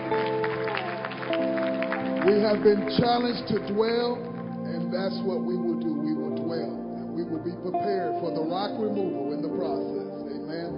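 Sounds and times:
audience clapping: 0.0 - 4.8
sustained organ or keyboard chords: 0.0 - 10.7
speech: 2.2 - 4.3, 4.9 - 6.8, 7.4 - 10.7.

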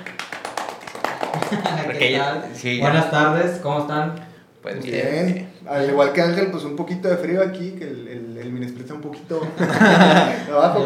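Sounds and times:
small group clapping: 0.0 - 2.1
laughter: 1.3 - 2.0, 9.4 - 10.8
speech: 1.4 - 10.8.

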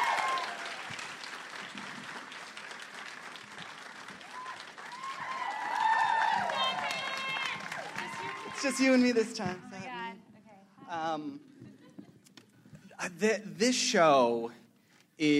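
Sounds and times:
excited whoops and cheers: 0.0 - 1.0, 4.2 - 9.1
audience applause: 0.0 - 9.4
speech: 8.6 - 9.7, 11.2 - 11.6, 13.0 - 14.6, 15.2 - 15.3.

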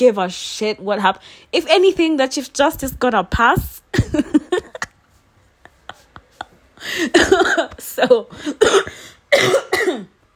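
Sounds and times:
speech: 0.0 - 4.5, 6.8 - 10.1
person coughing: 6.4 - 10.1.

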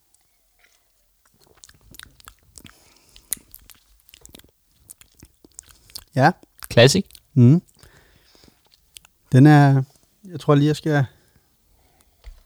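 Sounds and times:
speech: 6.2 - 7.7, 9.3 - 11.2
sipping wheat beer: 9.4 - 11.1.

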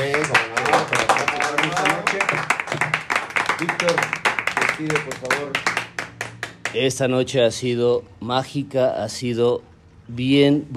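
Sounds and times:
crowd clapping: 0.0 - 6.9
speech: 6.8 - 10.7.

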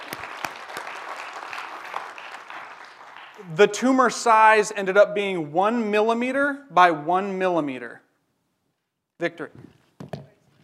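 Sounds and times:
audience applause: 0.0 - 3.7
speech: 3.4 - 8.0, 9.2 - 9.8.

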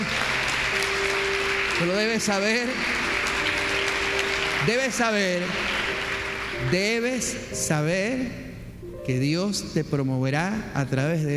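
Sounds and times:
audience applause: 0.0 - 7.3
speech: 1.8 - 3.1, 4.6 - 5.8, 6.6 - 8.4, 9.0 - 11.3.

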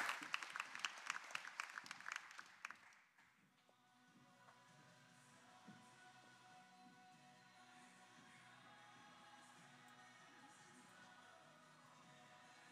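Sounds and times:
audience round of applause: 0.0 - 3.0.

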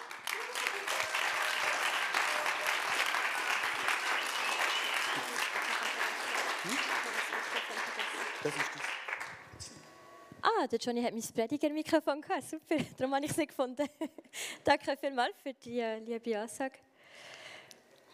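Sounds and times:
crowd applauding: 0.0 - 9.5
laughter: 4.8 - 9.0
speech: 8.4 - 8.8, 10.6 - 16.9.

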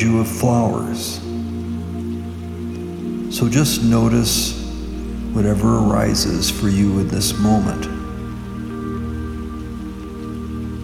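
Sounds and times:
speech: 0.0 - 1.3, 3.3 - 4.6, 5.3 - 8.0
rain falling: 0.0 - 10.8.

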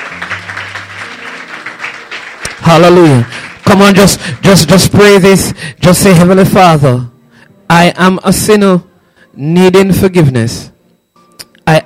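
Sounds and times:
crowd clapping hands: 0.0 - 5.2
speech: 2.6 - 7.1, 7.7 - 10.7, 11.7 - 11.8.

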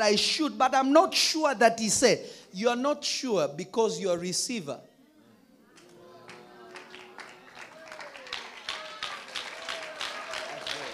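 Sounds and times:
speech: 0.0 - 4.9
audience clapping: 5.8 - 10.9.

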